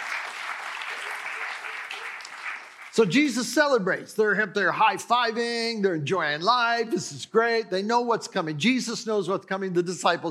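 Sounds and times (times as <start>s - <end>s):
audience clapping at a church service: 0.0s - 3.8s
speech: 3.0s - 10.2s.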